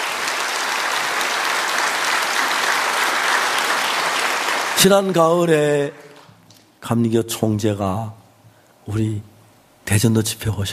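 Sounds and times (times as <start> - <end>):
audience applause: 0.0 - 6.3
speech: 4.8 - 6.1, 6.8 - 8.2, 8.8 - 9.3, 9.9 - 10.7.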